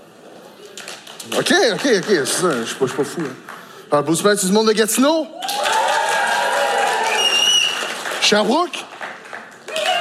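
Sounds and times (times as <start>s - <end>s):
crowd applauding: 0.8s - 3.7s, 5.4s - 10.0s
speech: 1.2s - 5.7s, 8.3s - 8.9s
whoops and high-pitched shouts: 5.4s - 7.8s, 9.7s - 10.0s.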